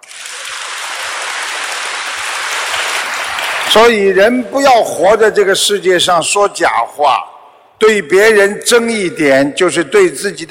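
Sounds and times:
crowd applause: 0.0 - 3.9
speech: 3.7 - 10.5.

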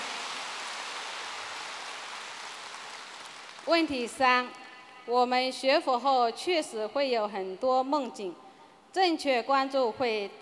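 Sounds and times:
audience applause: 0.0 - 3.7
speech: 3.7 - 10.4.

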